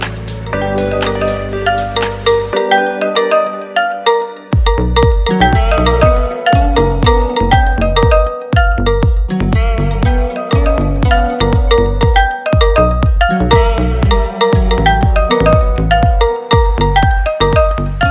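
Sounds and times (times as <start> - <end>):
Lenovo M10 FHD REL ringtone: 0.5 - 9.2, 10.2 - 18.0.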